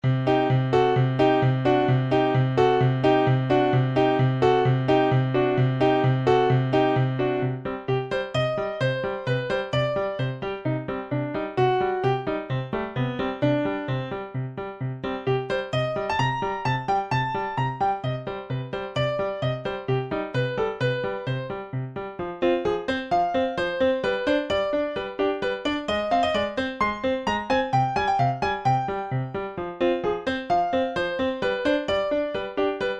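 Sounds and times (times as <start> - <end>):
piano: 0.0 - 32.9.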